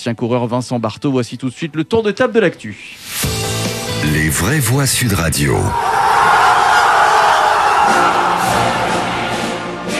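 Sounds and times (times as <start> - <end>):
speech: 0.0 - 3.4, 4.0 - 6.3
crowd cheering with joy after football win: 5.6 - 9.9
shouts and whoops: 5.7 - 9.0.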